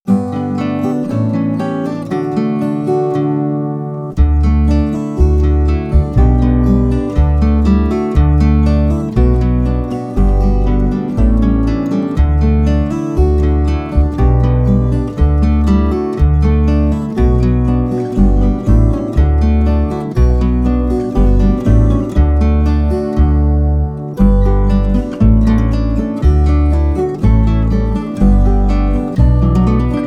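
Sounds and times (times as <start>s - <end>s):
instrumental music: 0.1s - 30.0s.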